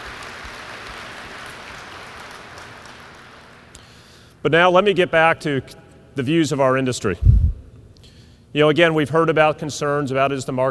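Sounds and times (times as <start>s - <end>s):
crowd applauding: 0.0s - 3.7s
speech: 4.4s - 7.4s, 8.5s - 10.6s.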